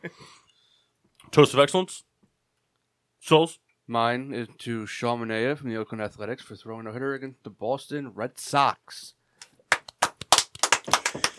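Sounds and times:
speech: 0.0s - 0.4s, 1.3s - 2.1s, 3.2s - 9.2s
golf clap: 9.4s - 11.3s.

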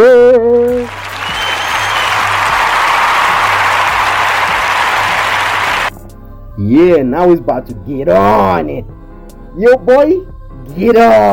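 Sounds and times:
round of applause: 0.7s - 5.9s
speech: 6.8s - 9.0s, 9.6s - 11.3s.

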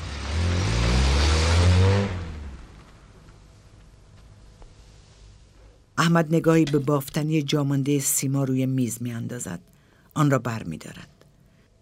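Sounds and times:
car engine pulling away at night: 0.0s - 3.5s
speech: 6.1s - 11.1s.

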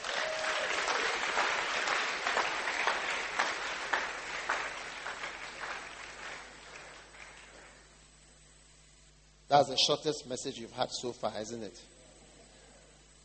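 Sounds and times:
audience applauding: 0.0s - 7.9s
speech: 9.5s - 12.0s.

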